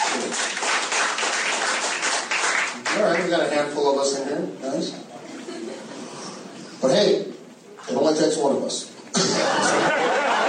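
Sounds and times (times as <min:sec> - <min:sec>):
scattered clapping from a comedy club audience: 0:00.0 - 0:03.5
speech: 0:03.0 - 0:05.1, 0:06.8 - 0:07.3, 0:08.1 - 0:08.9
laughter: 0:05.2 - 0:06.4, 0:09.1 - 0:10.4.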